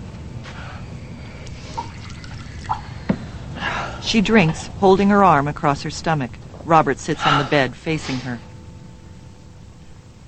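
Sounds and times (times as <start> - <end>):
liquid poured into a glass: 1.4 - 3.2
speech: 4.1 - 8.5.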